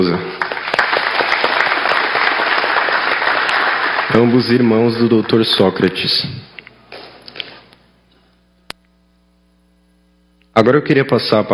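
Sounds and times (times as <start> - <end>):
speech: 0.0 - 0.4, 4.2 - 6.5, 10.6 - 11.5
audience applause: 0.0 - 5.6.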